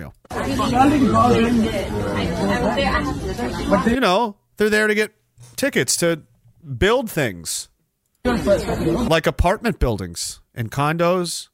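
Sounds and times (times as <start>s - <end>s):
speech: 0.0s - 11.5s
crowd chatter in a permit office: 0.3s - 4.0s, 8.2s - 9.1s.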